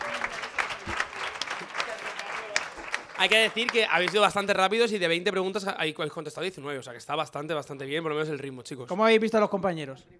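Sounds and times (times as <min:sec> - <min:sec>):
audience applause: 0:00.0 - 0:04.4
speech: 0:03.2 - 0:10.1.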